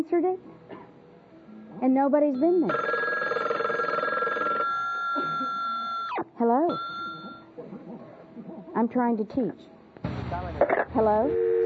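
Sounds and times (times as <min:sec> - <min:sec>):
speech: 0:00.0 - 0:00.7, 0:01.8 - 0:03.0, 0:06.4 - 0:06.9, 0:08.8 - 0:09.7, 0:10.3 - 0:11.5
telephone bell ringing: 0:02.3 - 0:07.5, 0:11.3 - 0:11.6.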